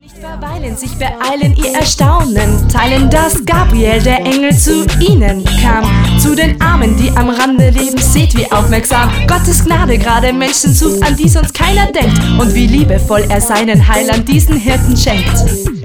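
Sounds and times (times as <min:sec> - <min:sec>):
rapping: 0:00.0 - 0:15.7.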